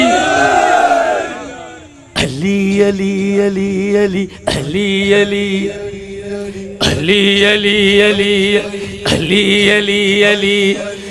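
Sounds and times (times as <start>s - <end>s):
crowd at a religious gathering shouting a chant: 0.0s - 2.1s
speech: 2.8s - 5.9s, 6.5s - 10.9s.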